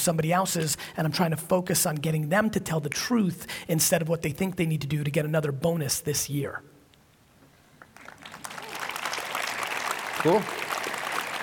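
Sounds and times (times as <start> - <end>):
speech: 0.0 - 6.7, 10.2 - 10.6
audience applause: 7.9 - 11.4.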